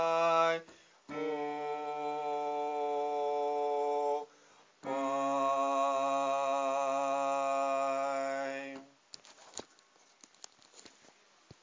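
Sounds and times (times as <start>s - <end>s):
bass section of a choir singing: 0.0s - 8.9s.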